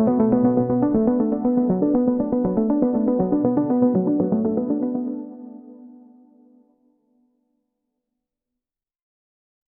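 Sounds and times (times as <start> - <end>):
warm arpeggios on an analog synthesizer with rising filter cutoff and reverb: 0.0 - 5.7.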